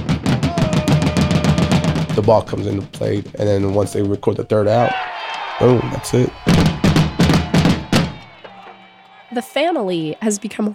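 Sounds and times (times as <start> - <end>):
fan banging a drum in ballpark bleachers: 0.0 - 5.0, 5.6 - 8.8
speech: 2.2 - 6.7, 9.3 - 10.7.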